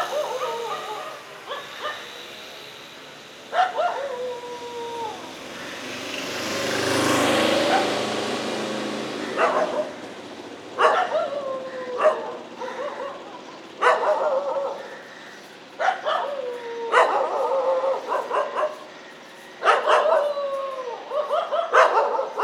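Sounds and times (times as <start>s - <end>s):
dog yelping and barking: 0.0s - 2.2s, 3.5s - 5.3s, 7.6s - 8.1s, 9.3s - 10.0s, 10.7s - 15.2s, 15.8s - 22.4s
vehicle passing: 0.0s - 22.4s.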